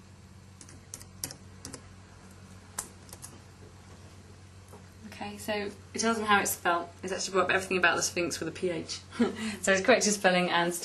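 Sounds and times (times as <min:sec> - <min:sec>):
typing on a computer keyboard in a children's learning app: 0:00.6 - 0:01.8
speech: 0:05.2 - 0:10.8.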